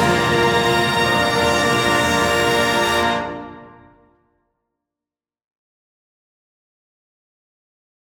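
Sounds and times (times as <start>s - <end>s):
run-on fanfare: 0.0s - 4.1s.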